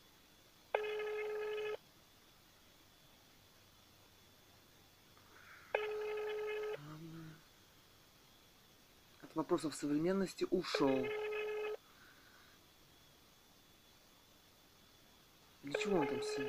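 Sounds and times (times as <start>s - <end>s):
faint hiss: 0.0s - 11.1s, 11.7s - 16.4s
outgoing phone call ringback tones: 0.8s - 1.8s, 5.7s - 6.8s, 10.8s - 11.8s, 15.7s - 16.4s
speech: 9.4s - 11.2s.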